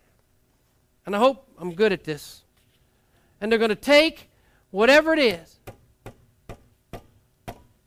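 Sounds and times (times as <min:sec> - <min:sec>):
speech: 0:01.0 - 0:02.4, 0:03.4 - 0:05.6
hammer striking a nail: 0:05.6 - 0:07.8.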